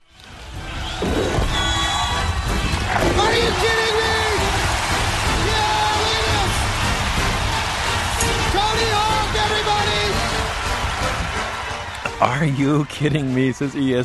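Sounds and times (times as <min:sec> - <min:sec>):
music at skateboarding event: 0:00.0 - 0:14.0
applause at skateboarding event: 0:01.9 - 0:13.0
speech: 0:12.2 - 0:14.0.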